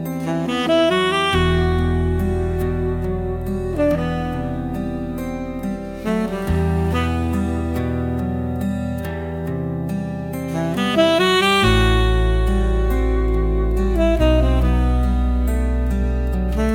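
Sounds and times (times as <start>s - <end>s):
saxophone: 0.1s - 16.7s.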